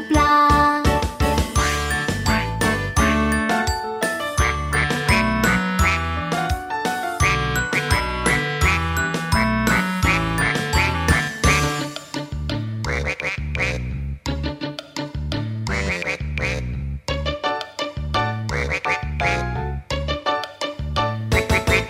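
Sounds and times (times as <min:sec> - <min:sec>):
bouncy musical backing with a pulsing bass line: 0:00.0 - 0:21.8
duck quacking: 0:04.4 - 0:06.2, 0:07.2 - 0:11.8, 0:12.9 - 0:13.9, 0:15.7 - 0:16.8, 0:18.5 - 0:19.6, 0:21.3 - 0:21.8.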